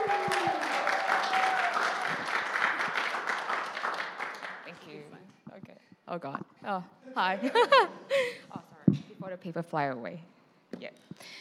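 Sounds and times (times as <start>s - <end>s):
audience applause: 0.0s - 4.7s
speech: 6.1s - 8.4s, 9.2s - 11.3s.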